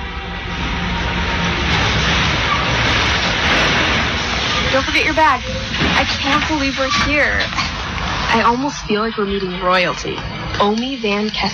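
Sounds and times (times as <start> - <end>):
bus rolling to a stop: 0.0 - 10.9
speech: 4.8 - 7.7, 8.3 - 11.5.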